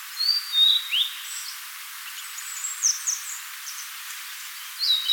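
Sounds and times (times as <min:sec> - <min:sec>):
blue-and-white flycatcher whistled song: 0:00.2 - 0:01.5, 0:04.8 - 0:05.1.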